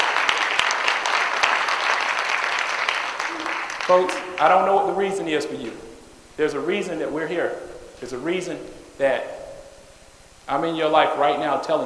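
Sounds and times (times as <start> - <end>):
audience applause: 0.0 - 5.1
speech: 3.9 - 9.4, 10.5 - 11.8.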